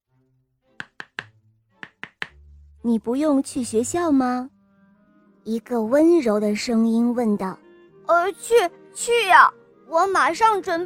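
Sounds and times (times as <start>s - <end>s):
knocking on a door: 0.8s - 2.4s
speech: 2.8s - 4.6s, 5.5s - 10.8s.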